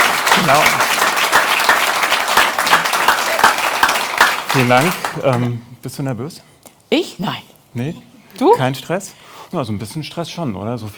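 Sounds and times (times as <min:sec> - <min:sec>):
audience applauding: 0:00.0 - 0:05.5
speech: 0:00.5 - 0:00.8, 0:04.5 - 0:10.9.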